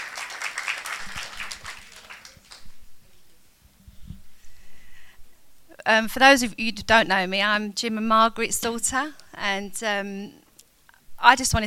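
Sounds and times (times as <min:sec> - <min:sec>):
audience applause: 0:00.0 - 0:02.7
speech: 0:05.9 - 0:10.4, 0:11.2 - 0:11.6.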